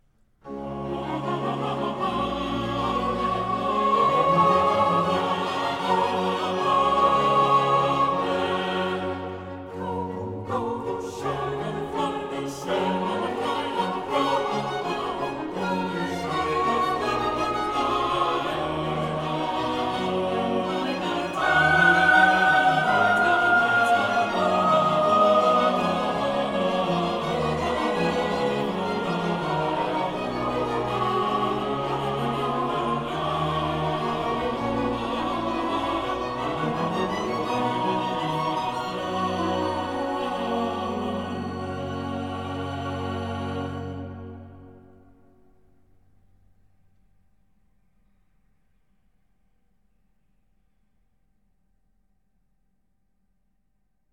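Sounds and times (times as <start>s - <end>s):
choir singing: 0.4s - 45.4s.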